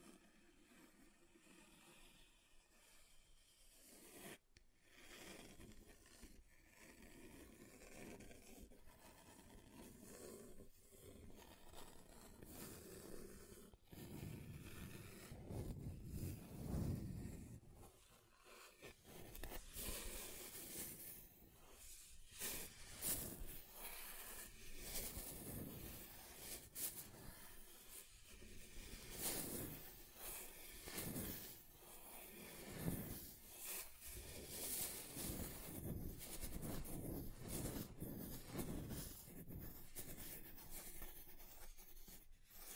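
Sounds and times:
scratching on a table: 0:03.7 - 0:42.7.

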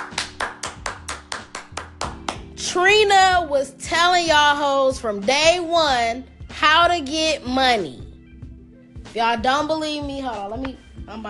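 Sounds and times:
audience clapping: 0:00.0 - 0:02.5
speech: 0:02.8 - 0:08.0, 0:09.2 - 0:11.2.

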